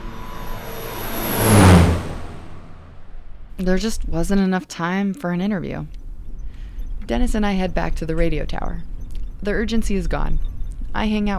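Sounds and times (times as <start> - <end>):
car driving away from the plane: 0.0 - 3.6
speech: 3.6 - 6.0, 7.1 - 11.3.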